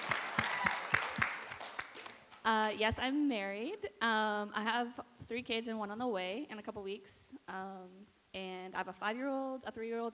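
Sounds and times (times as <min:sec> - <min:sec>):
audience clapping: 0:00.0 - 0:02.3
speech: 0:02.5 - 0:10.1.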